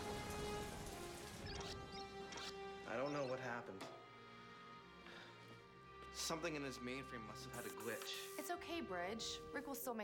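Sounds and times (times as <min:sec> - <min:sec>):
rain starting to fall, pattering on a surface: 0:00.0 - 0:02.3
speech: 0:02.9 - 0:04.1, 0:06.3 - 0:10.0.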